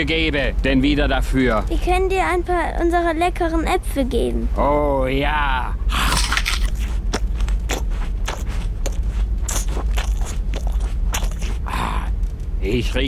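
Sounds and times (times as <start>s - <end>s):
speech: 0.0s - 6.2s, 12.6s - 13.0s
gingerbread eaten with its paper wrapping and string: 5.9s - 12.2s.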